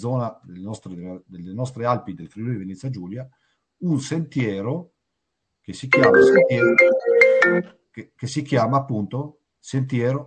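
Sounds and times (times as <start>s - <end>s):
speech: 0.0s - 4.9s, 5.6s - 10.2s
mobile phone ringtone with melodic electronic notes: 6.0s - 7.7s.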